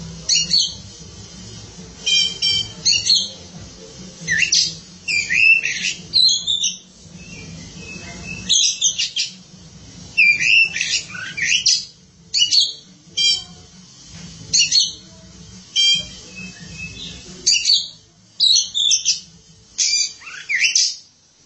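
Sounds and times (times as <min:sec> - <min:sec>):
Oriental magpie-robin song: 0:00.3 - 0:00.8, 0:02.0 - 0:03.5, 0:04.3 - 0:09.4, 0:10.2 - 0:13.5, 0:14.5 - 0:15.0, 0:15.7 - 0:21.0.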